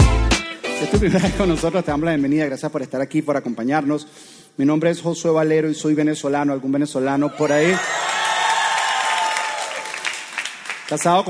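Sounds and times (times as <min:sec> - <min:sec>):
speech: 0:01.0 - 0:08.1, 0:10.9 - 0:11.2
audience applause: 0:07.5 - 0:11.2.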